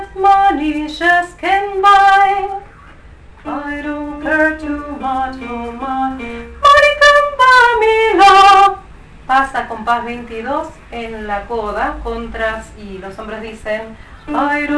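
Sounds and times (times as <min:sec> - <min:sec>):
soprano voices singing: 0:00.0 - 0:02.6, 0:03.4 - 0:10.2, 0:12.3 - 0:14.7.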